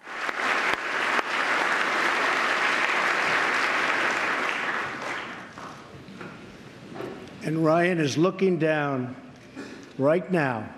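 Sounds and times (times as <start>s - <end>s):
large crowd sustained applause, standing ovation: 0.0s - 5.8s
speech: 7.4s - 9.2s, 10.0s - 10.7s.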